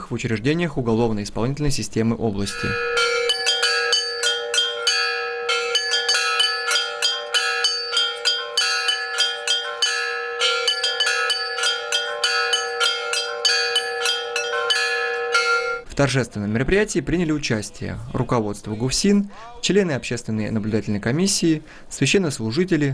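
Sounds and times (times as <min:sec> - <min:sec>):
speech: 0:00.1 - 0:03.1, 0:16.0 - 0:22.9
church bells ringing from a belfry of eight bells: 0:02.5 - 0:15.8.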